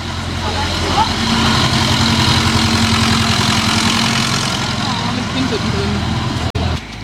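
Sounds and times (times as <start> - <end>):
village ambience: 0.0 - 7.0.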